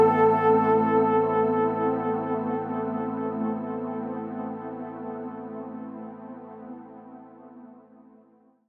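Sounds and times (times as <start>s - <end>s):
flugelhorn: 0.0s - 6.7s.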